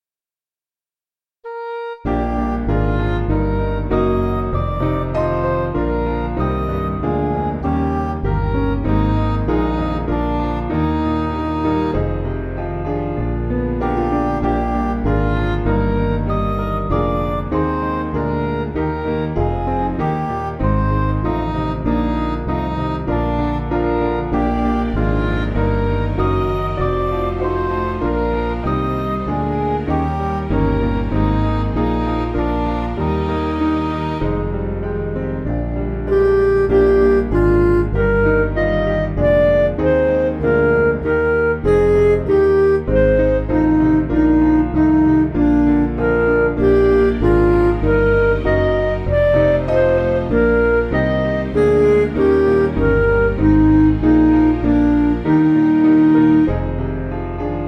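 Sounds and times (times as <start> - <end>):
backing music for churches: 2.0 - 57.6.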